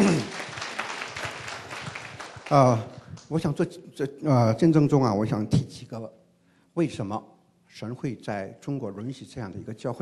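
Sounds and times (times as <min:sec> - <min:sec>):
audience applause: 0:00.0 - 0:03.3
speech: 0:02.5 - 0:06.2, 0:06.8 - 0:10.0.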